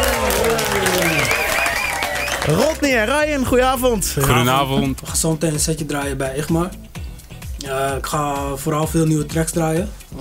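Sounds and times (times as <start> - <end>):
crowd applause at a dance music event: 0.0 - 3.1
speech: 2.4 - 6.9, 7.6 - 10.1.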